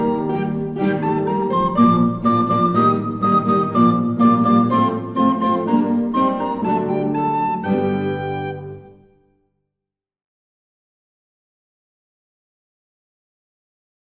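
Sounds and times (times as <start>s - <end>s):
recorder playing: 0.0s - 9.2s.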